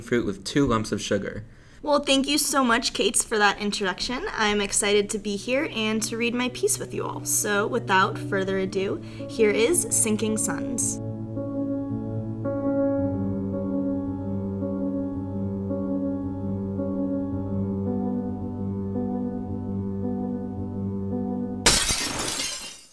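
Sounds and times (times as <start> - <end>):
speech: 0.0 - 11.0
droning musical tones: 5.4 - 21.7
ceramic plate crashing and shattering on a floor: 21.6 - 22.9.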